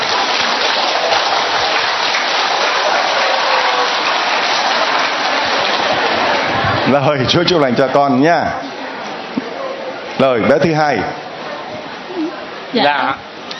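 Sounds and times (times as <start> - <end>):
audience applause: 0.0 - 7.8
speech: 6.9 - 8.7, 10.2 - 11.2, 12.7 - 13.3.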